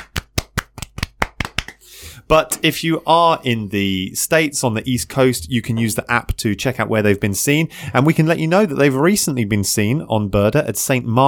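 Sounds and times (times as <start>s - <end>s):
clapping: 0.0s - 1.8s
speech: 2.2s - 11.2s.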